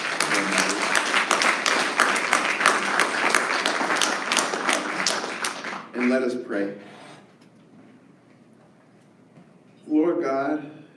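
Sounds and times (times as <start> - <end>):
audience clapping hands: 0.0 - 6.6
speech: 6.2 - 7.0.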